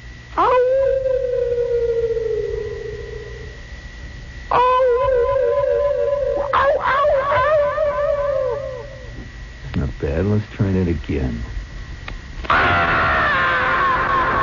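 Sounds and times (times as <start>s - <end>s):
voice imitating echoing wild animal howls: 0.4s - 3.5s, 4.5s - 9.1s, 12.5s - 14.4s
speech: 10.8s - 11.6s.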